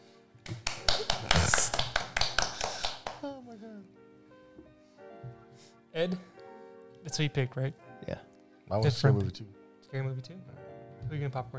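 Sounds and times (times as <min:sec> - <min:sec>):
golf clap: 0:00.5 - 0:03.2
laughter: 0:00.5 - 0:03.9
speech: 0:03.6 - 0:04.0, 0:06.0 - 0:06.3, 0:07.0 - 0:11.5.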